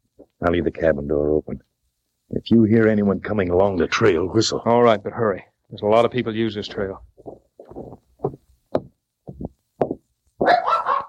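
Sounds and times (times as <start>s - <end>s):
speech: 0.4s - 1.7s, 2.3s - 7.1s
friendly dog barking: 10.4s - 11.0s.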